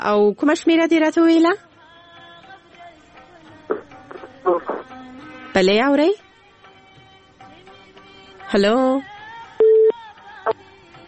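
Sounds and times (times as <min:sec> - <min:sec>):
speech: 0:00.0 - 0:01.7, 0:05.6 - 0:06.2, 0:08.5 - 0:09.1
telephone beep after a call cuts off: 0:09.6 - 0:10.0.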